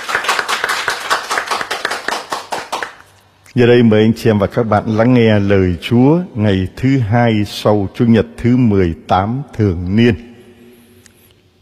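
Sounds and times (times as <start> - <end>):
church congregation clapping: 0.0 - 3.1
speech: 3.6 - 10.3.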